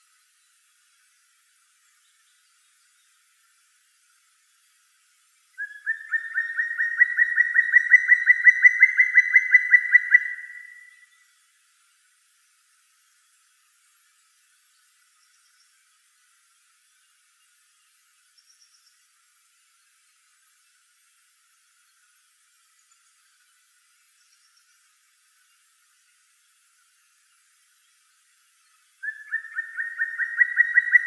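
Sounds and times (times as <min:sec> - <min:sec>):
black woodpecker Dryocopus martius: 0:05.6 - 0:11.0, 0:29.0 - 0:31.0.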